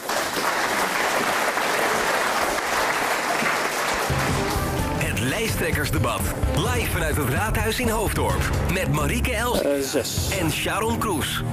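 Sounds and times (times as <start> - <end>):
audience applause: 0.0 - 5.3
speech: 5.2 - 11.5.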